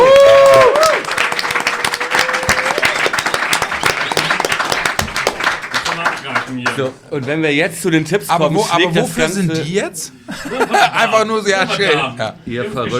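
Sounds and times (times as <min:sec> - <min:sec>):
audience applause: 0:00.0 - 0:07.0
speech: 0:06.8 - 0:12.9
laughter: 0:10.3 - 0:12.1.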